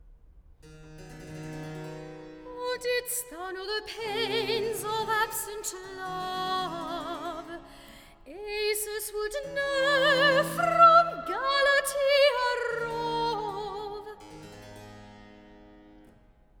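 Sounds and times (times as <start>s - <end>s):
person singing recitative: 2.6s - 7.7s, 8.3s - 14.2s.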